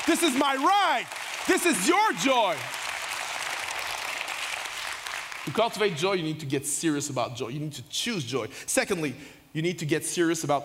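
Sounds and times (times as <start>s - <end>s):
audience clapping: 0.0s - 6.1s
speech: 0.1s - 2.8s, 5.5s - 10.6s.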